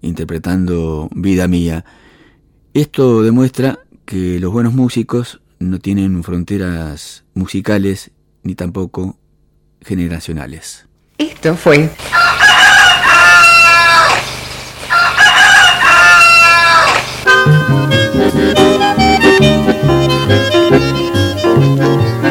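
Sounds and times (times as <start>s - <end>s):
speech: 0.0s - 2.0s, 2.8s - 9.2s, 9.8s - 12.3s, 19.4s - 21.0s
rooster crowing: 12.0s - 17.2s
music: 17.2s - 22.2s.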